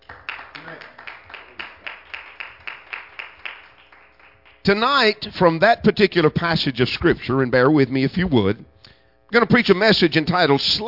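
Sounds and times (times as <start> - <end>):
crowd clapping hands in a steady rhythmic beat in a large room: 0.0 - 4.8
speech: 4.7 - 8.7, 9.3 - 10.8.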